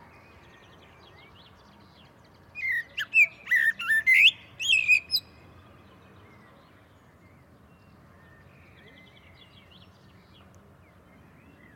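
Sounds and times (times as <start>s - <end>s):
common blackbird fluty whistled notes: 2.6s - 5.3s.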